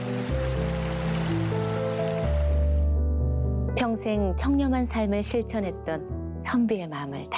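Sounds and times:
flowing mountain stream water: 0.0s - 2.9s
sustained low musical tones and shifting chords: 0.0s - 4.4s
speech: 3.8s - 7.3s.

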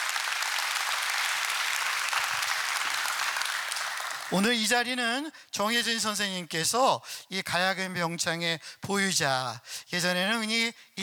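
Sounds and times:
audience applause: 0.0s - 4.4s
speech: 4.3s - 11.0s.

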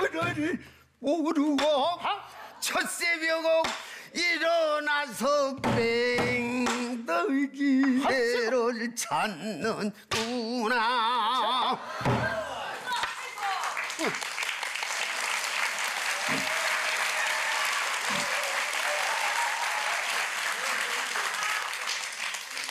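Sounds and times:
speech: 0.2s - 12.4s
audience clapping: 12.6s - 22.6s.

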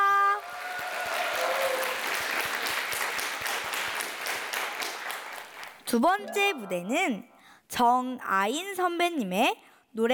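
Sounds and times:
audience applause: 0.4s - 5.8s
held musical tone: 5.9s - 7.4s
speech: 5.9s - 10.1s.

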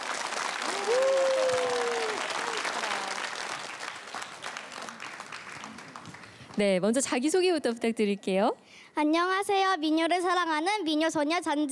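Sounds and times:
audience applause: 0.0s - 6.6s
speech: 6.6s - 11.6s.

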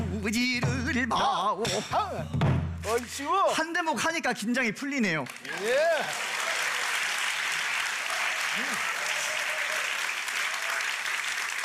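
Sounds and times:
speech: 0.2s - 6.4s
audience applause: 5.3s - 11.6s.

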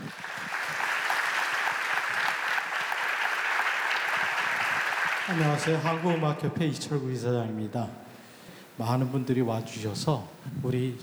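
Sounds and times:
audience applause: 0.0s - 11.0s
speech: 5.3s - 8.0s, 8.8s - 11.0s.

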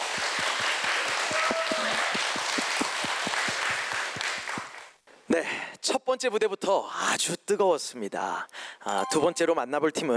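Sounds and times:
audience applause: 0.0s - 4.9s
speech: 5.4s - 10.1s.

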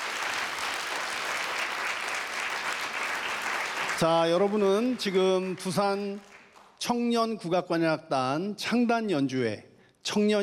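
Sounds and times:
audience applause: 0.0s - 6.5s
speech: 4.0s - 10.4s.

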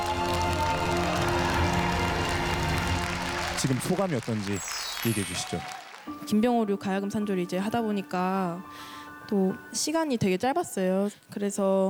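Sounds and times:
audience applause: 0.0s - 6.2s
music: 0.0s - 11.8s
speech: 3.6s - 11.8s.

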